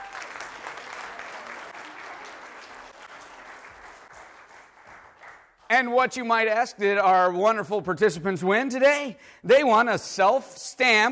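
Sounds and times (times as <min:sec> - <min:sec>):
audience applause for the winners: 0:00.0 - 0:05.7
speech: 0:05.7 - 0:11.1.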